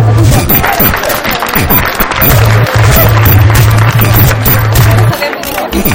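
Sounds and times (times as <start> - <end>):
crowd applause: 0.1 - 5.8.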